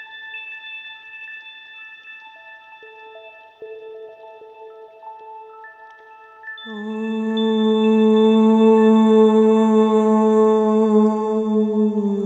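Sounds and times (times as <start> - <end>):
mantra chanting at 432 Hz: 6.7 - 12.2.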